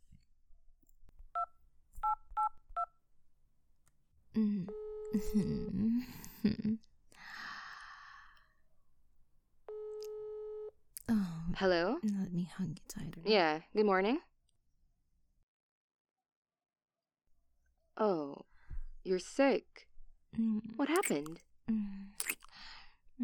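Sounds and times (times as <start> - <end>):
dual-tone beeps of phone number being dialed: 1.4 - 2.9
steady electronic phone tone: 4.6 - 5.8, 9.7 - 10.7
speech: 5.2 - 6.9, 11.6 - 14.3, 19.1 - 21.9
breathy sighs: 7.2 - 8.5.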